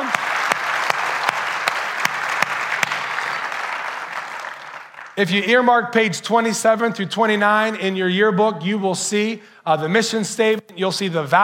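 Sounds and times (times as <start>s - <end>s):
audience applause: 0.0s - 5.2s
speech: 5.2s - 11.4s.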